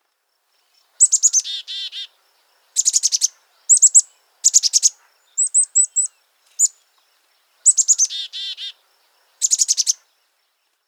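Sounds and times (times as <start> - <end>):
black-capped chickadee calls: 1.0 - 6.8, 7.6 - 10.0.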